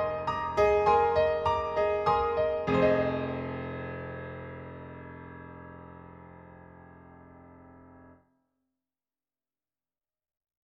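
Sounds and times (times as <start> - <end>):
aggressive piano playing: 0.0 - 8.2.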